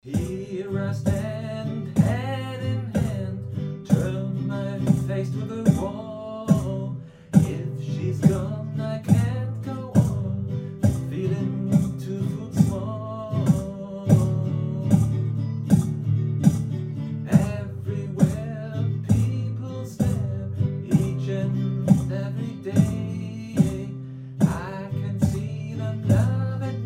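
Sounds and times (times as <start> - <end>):
percussion recorded with Zylia: 0.0 - 26.8.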